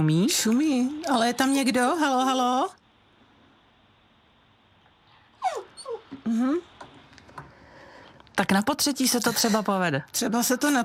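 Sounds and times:
speech: 0.0s - 2.8s, 6.3s - 6.7s, 8.4s - 10.8s
dogs whimpering: 5.4s - 6.2s.

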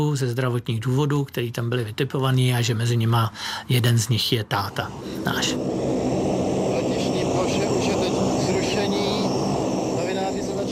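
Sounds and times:
speech: 0.0s - 5.8s
airplane engines roaring on the ground after landing: 4.4s - 10.7s
voices: 4.5s - 10.7s.

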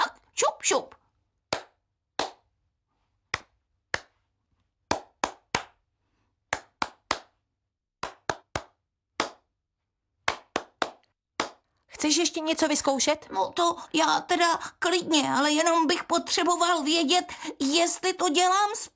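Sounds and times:
speech: 0.6s - 1.0s, 12.0s - 18.9s
rhythmic hand claps: 1.5s - 2.5s, 3.3s - 4.3s, 4.9s - 5.8s, 6.5s - 7.4s, 8.0s - 9.5s, 10.2s - 11.7s.

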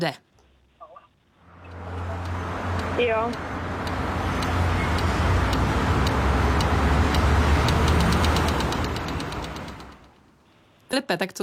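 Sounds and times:
speech: 0.0s - 0.2s, 3.0s - 3.5s, 10.9s - 11.4s
low traffic rumble: 1.4s - 10.2s
pedestrian traffic light ticking signal for blind people: 1.6s - 10.2s.

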